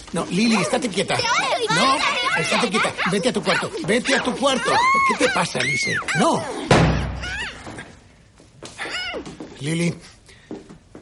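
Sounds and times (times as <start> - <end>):
speech: 0.1 - 7.3, 9.6 - 10.1
door slamming: 6.7 - 8.0.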